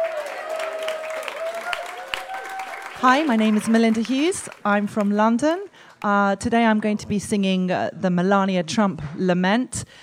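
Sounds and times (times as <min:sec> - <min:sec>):
audience applause: 0:00.0 - 0:05.1
speech: 0:03.0 - 0:10.0.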